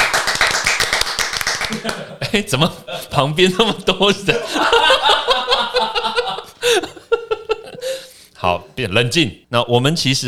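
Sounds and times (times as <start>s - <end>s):
hand clapping: 0.0s - 2.1s
laughter: 1.7s - 3.1s, 4.3s - 8.1s
speech: 1.8s - 6.9s, 8.4s - 10.2s.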